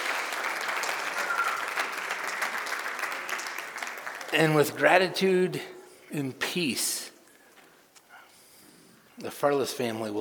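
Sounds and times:
audience applause: 0.0s - 5.1s
speech: 4.3s - 7.1s, 9.2s - 10.2s.

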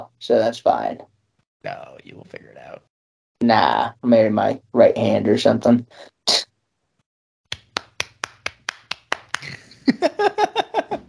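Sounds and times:
speech: 0.2s - 6.4s
hand clapping: 7.5s - 9.6s
laughter: 9.4s - 11.0s.

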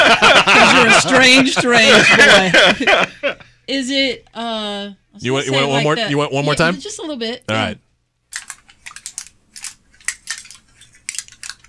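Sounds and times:
laughter: 0.0s - 3.5s
speech: 1.2s - 7.8s
aluminum foil being wrinkled during a sound-guessing game: 8.3s - 11.6s.

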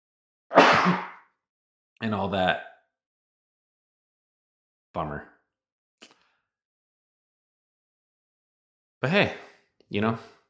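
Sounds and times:
person sneezing: 0.5s - 1.1s
speech: 0.8s - 1.1s, 2.0s - 2.7s, 5.0s - 5.3s, 9.0s - 10.4s.

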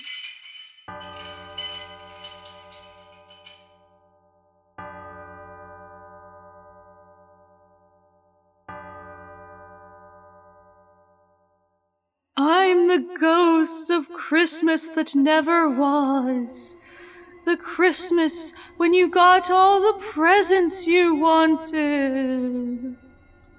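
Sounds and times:
ghostly bell tolling sound effect: 0.9s - 3.7s
speech: 13.0s - 16.8s, 17.5s - 22.9s.

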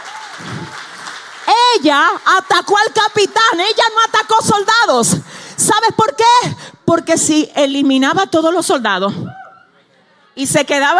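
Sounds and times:
audience applauding: 0.0s - 2.0s
speech: 1.8s - 9.4s, 10.4s - 10.9s.

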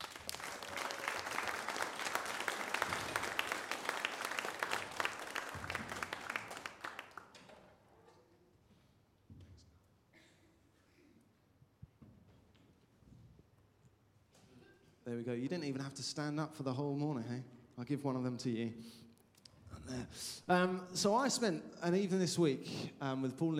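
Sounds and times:
audience applause welcoming two guests: 0.0s - 7.4s
speech: 15.1s - 19.0s, 19.9s - 23.5s.

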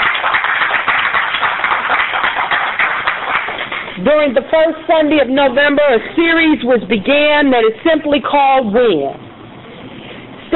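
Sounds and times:
audience clapping: 0.0s - 4.0s
speech: 4.0s - 9.2s.

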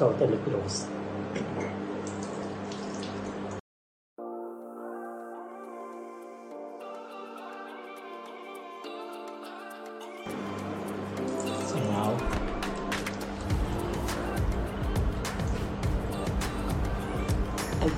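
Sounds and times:
speech: 0.0s - 1.7s
water running at a sink as someone washes their face: 2.0s - 3.6s
tonal music: 4.2s - 17.9s.

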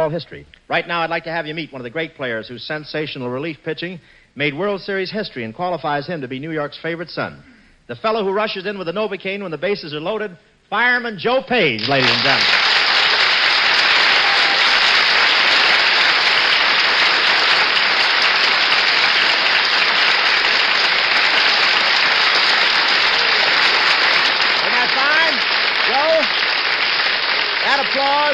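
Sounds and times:
speech: 0.0s - 12.7s
studio audience applause: 11.8s - 28.3s.

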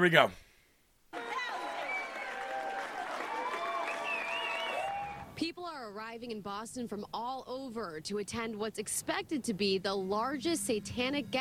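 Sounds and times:
speech: 0.0s - 0.4s, 5.4s - 11.3s
Satanists applauding: 1.1s - 5.3s.

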